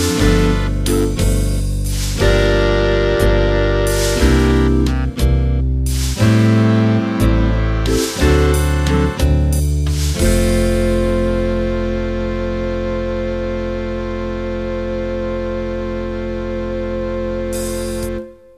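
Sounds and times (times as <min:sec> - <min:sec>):
slow jazz music: 0:00.0 - 0:18.5.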